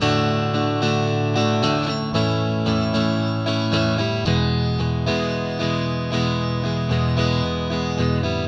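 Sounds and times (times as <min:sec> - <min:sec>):
acoustic guitar: 0:00.0 - 0:08.4.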